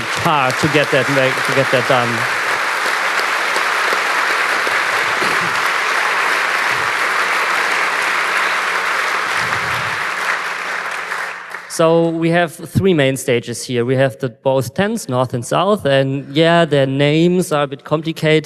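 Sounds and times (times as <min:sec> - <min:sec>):
audience applause: 0:00.0 - 0:11.8
speech: 0:00.2 - 0:02.4, 0:11.8 - 0:18.4.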